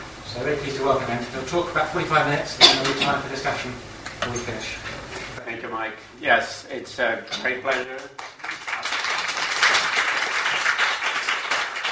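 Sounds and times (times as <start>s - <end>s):
speech: 0.4s - 8.2s
audience applause: 8.2s - 11.9s.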